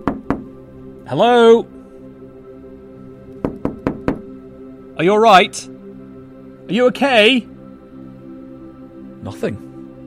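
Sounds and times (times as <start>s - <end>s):
knocking on shop window glass: 0.0s - 0.5s, 3.4s - 4.2s
speech: 1.1s - 1.8s, 5.0s - 5.7s, 6.7s - 7.5s, 9.2s - 9.7s.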